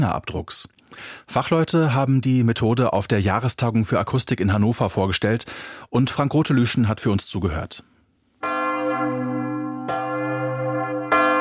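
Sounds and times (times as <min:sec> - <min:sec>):
speech: 0:00.0 - 0:09.3
large church bell struck by its clapper: 0:08.4 - 0:11.4.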